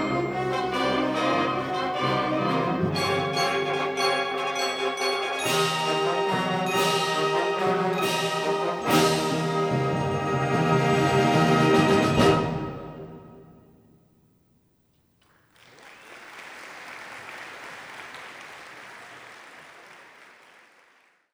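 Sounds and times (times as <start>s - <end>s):
fanfare: 0.0s - 13.6s.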